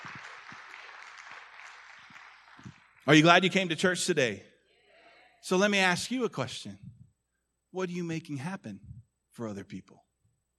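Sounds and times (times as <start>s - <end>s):
audience round of applause: 0.0s - 3.6s
speech: 3.1s - 4.5s, 5.4s - 6.8s, 7.7s - 10.0s.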